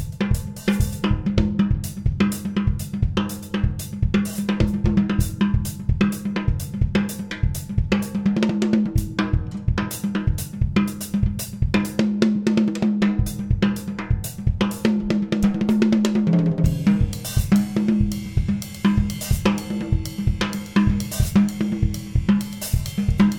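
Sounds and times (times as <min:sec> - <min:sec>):
drum track with Tama snare: 0:00.0 - 0:23.3.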